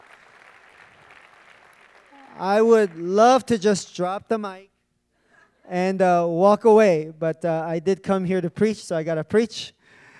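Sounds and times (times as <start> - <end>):
audience clapping: 0.0 - 3.5
speech: 2.4 - 4.7, 5.7 - 9.8.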